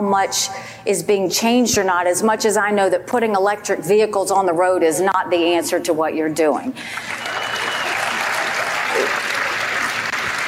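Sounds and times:
speech: 0.0s - 7.4s
crowd applauding: 6.8s - 10.4s.

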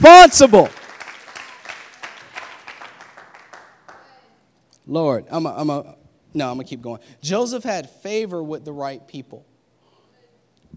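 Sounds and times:
audience clapping: 0.0s - 4.2s
speech: 0.2s - 0.8s, 4.9s - 9.5s.

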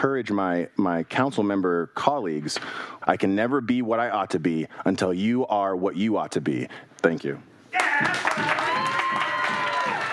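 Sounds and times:
speech: 0.0s - 8.8s
applause from council meeting audience: 7.8s - 10.1s.

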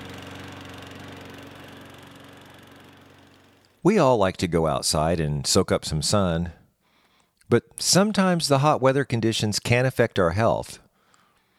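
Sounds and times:
lawn mower engine droning in the hot afternoon: 0.0s - 4.8s
speech: 3.8s - 6.6s, 7.5s - 10.8s.

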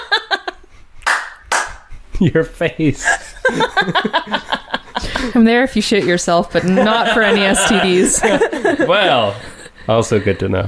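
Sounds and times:
laughter: 0.0s - 0.7s, 3.0s - 10.6s
single hand clap: 1.0s - 1.8s
speech: 2.2s - 4.6s, 5.2s - 10.6s.

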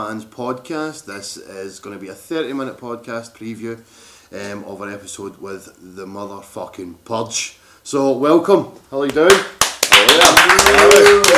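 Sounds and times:
speech: 0.0s - 11.3s
small audience clapping: 9.1s - 11.3s.

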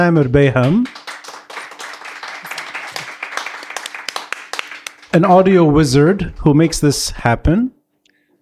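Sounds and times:
speech: 0.0s - 1.0s, 5.2s - 7.8s
audience applause: 0.6s - 5.2s.

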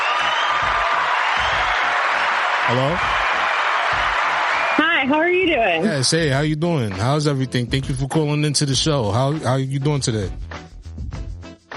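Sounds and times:
crowd applause: 0.0s - 5.2s
speech: 2.7s - 3.3s, 5.1s - 10.6s.

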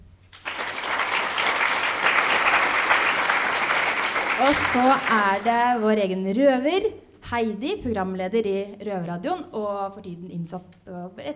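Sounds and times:
audience applause: 0.3s - 5.8s
speech: 4.5s - 11.3s.

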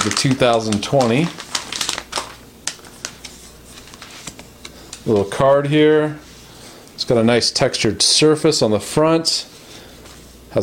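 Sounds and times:
speech: 0.0s - 1.4s, 5.0s - 6.2s, 7.0s - 9.5s
sleep masks being pulled from their packaging: 0.0s - 5.3s.

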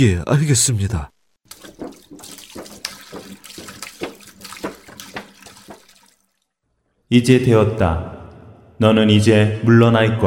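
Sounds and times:
speech: 0.0s - 1.1s, 7.1s - 8.2s, 8.8s - 10.2s
broth being poured over food: 1.4s - 6.6s.

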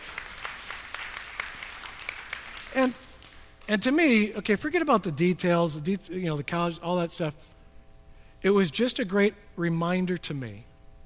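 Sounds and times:
audience applause: 0.0s - 3.4s
speech: 2.8s - 3.0s, 3.7s - 7.6s, 8.4s - 10.7s.

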